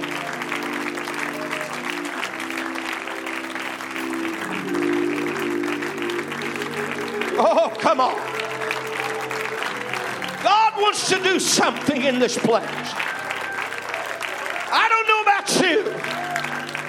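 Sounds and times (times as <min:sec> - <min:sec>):
sustained organ or keyboard chord: 0:00.0 - 0:13.0
audience clapping: 0:00.0 - 0:16.8
speech: 0:07.4 - 0:08.3, 0:10.9 - 0:13.1.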